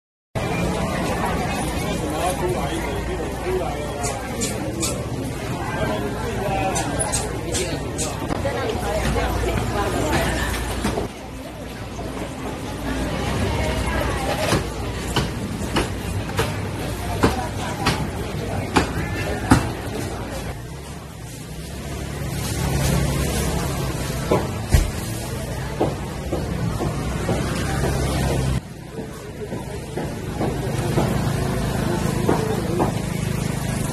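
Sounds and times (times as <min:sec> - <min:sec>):
indoor street food market and street road ambience: 0:00.4 - 0:33.9.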